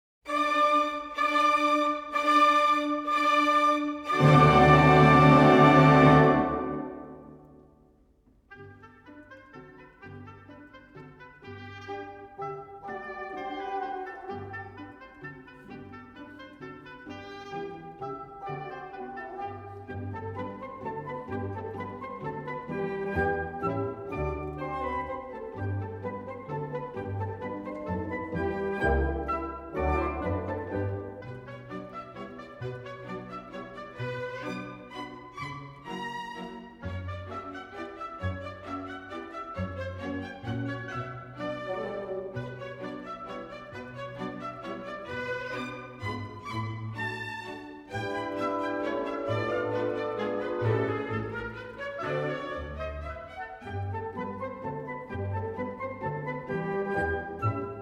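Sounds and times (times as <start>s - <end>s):
fantastic ballet music allegretto delicato: 0.3s - 57.8s.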